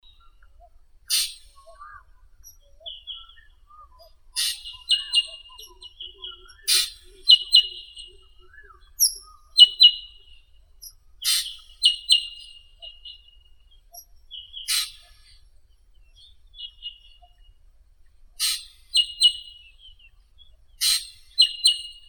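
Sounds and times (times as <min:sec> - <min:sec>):
black drongo Dicrurus macrocercus calling: 0:00.0 - 0:13.3, 0:13.9 - 0:15.4, 0:18.4 - 0:19.8, 0:20.8 - 0:22.0.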